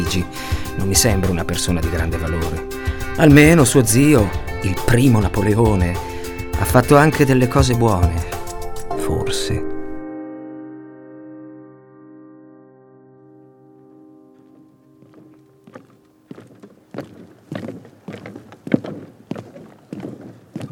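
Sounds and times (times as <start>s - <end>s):
speech: 0.0s - 8.4s, 9.1s - 9.7s
footsteps climbing stairs to Nadar's attic studio in Paris: 15.0s - 20.6s.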